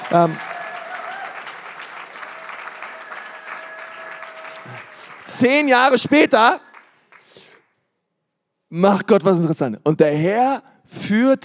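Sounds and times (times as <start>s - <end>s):
crowd applause: 0.0s - 7.6s
speech: 0.1s - 0.5s, 5.4s - 6.6s, 8.7s - 11.4s.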